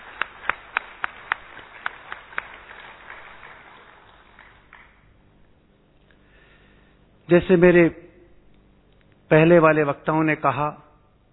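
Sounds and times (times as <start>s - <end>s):
audience applause: 0.0s - 5.1s
speech: 7.3s - 8.0s, 9.3s - 10.8s.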